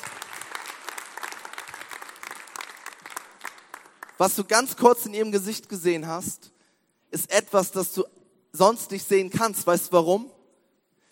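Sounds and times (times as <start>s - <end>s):
audience applause: 0.0s - 4.2s
speech: 4.2s - 6.5s, 7.1s - 10.4s.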